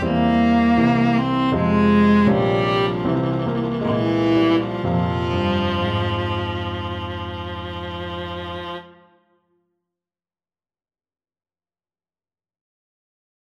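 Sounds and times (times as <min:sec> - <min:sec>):
viola playing a galliard sonata: 0:00.0 - 0:09.3.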